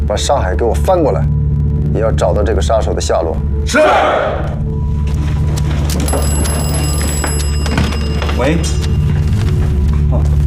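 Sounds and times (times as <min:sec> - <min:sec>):
speech: 0:00.1 - 0:01.4, 0:01.9 - 0:04.6, 0:08.4 - 0:08.8, 0:10.1 - 0:10.3
telephone ringing: 0:05.4 - 0:09.9.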